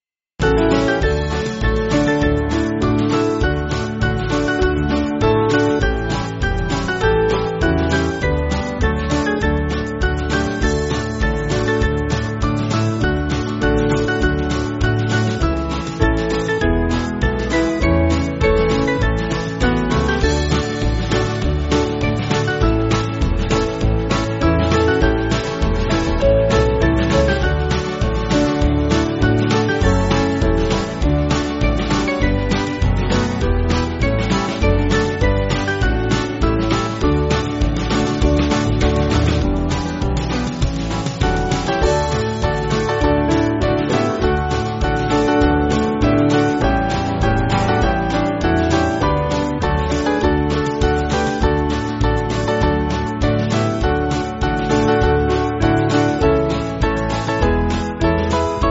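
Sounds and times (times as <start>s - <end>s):
band backing track for churches: 0.4s - 58.6s.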